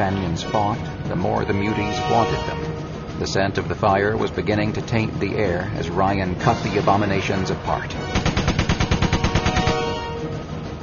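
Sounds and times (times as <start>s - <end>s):
speech: 0.0s - 8.3s
automatic gunfire sound effect: 8.1s - 10.0s.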